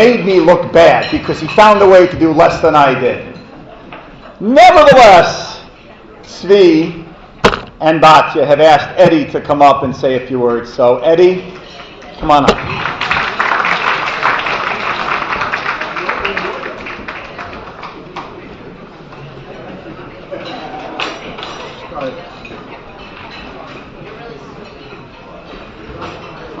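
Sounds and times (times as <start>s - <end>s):
speech: 0.0s - 3.3s, 4.4s - 5.4s, 6.3s - 7.0s, 7.8s - 11.6s, 12.2s - 13.0s
audience clapping: 12.4s - 18.4s.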